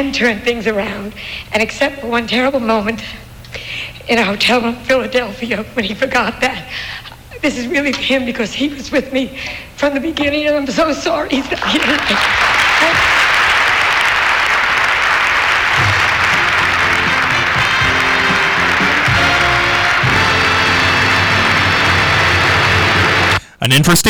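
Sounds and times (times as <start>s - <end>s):
speech: 0.0s - 13.1s, 23.6s - 24.0s
audience applause during a standing ovation: 11.4s - 24.0s.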